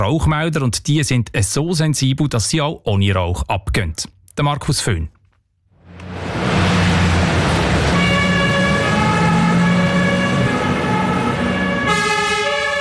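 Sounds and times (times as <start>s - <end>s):
speech: 0.0s - 5.2s
Luzerner Feuerwehr fire engines leaving station with sirens: 5.8s - 12.8s.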